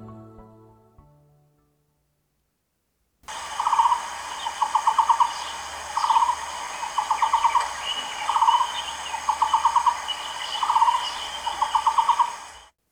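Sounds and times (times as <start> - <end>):
soft steady hiss: 1.6 - 12.9
bird knocking call: 3.3 - 12.6.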